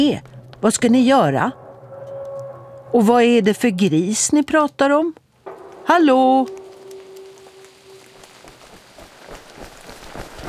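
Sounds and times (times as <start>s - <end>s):
speech: 0.0s - 1.6s, 2.9s - 5.2s, 5.9s - 6.6s
steady rain: 5.4s - 10.4s
quick running footsteps splashing through rain: 8.2s - 10.4s.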